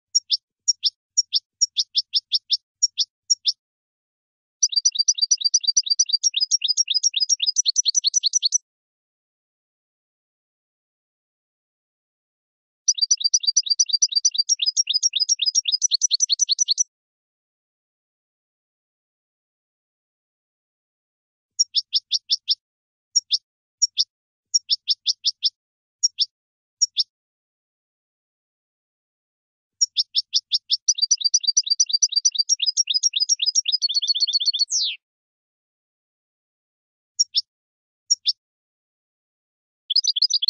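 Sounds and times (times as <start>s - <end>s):
finch chirping: 0.1s - 3.6s, 4.6s - 8.6s, 12.9s - 16.9s, 21.6s - 22.6s, 23.2s - 27.1s, 29.8s - 35.0s, 37.2s - 37.5s, 38.1s - 38.4s, 39.9s - 40.4s.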